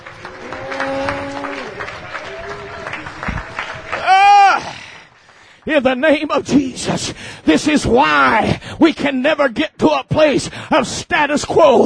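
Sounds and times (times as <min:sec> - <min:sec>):
audience clapping hands: 0:00.0 - 0:06.8
speech: 0:05.7 - 0:11.8.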